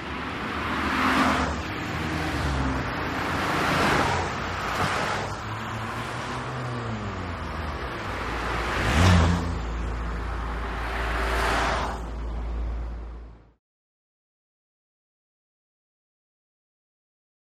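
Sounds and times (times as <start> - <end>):
highway traffic passing in a big city: 0.0 - 13.6.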